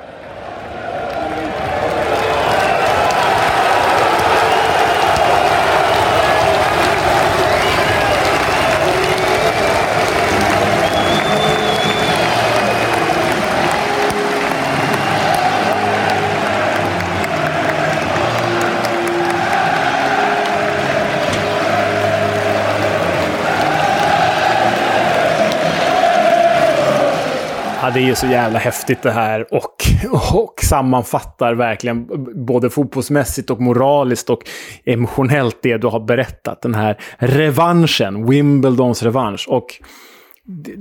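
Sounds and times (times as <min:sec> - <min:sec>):
football stadium crowd cheering, applauding and chanting: 0:00.0 - 0:29.3
speech: 0:28.0 - 0:40.8.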